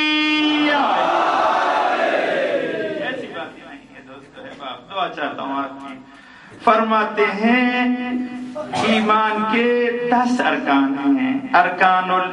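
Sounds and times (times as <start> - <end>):
crowd chanting a slogan in unison: 0.6 - 3.5
speech: 5.1 - 12.3.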